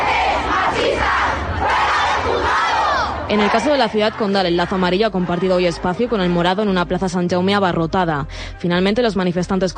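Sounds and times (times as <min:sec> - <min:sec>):
protest crowd shouting slogans: 0:00.0 - 0:06.6
speech: 0:03.3 - 0:09.7.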